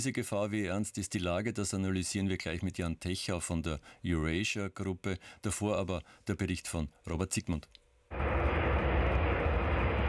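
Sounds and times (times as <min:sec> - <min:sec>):
speech: 0:00.0 - 0:07.8
US military aircraft engine roar landing on a runway in Riga, Latvia: 0:08.1 - 0:10.0.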